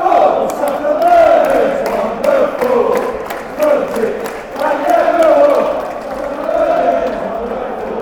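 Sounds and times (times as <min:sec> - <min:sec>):
football fans chanting: 0:00.0 - 0:07.9.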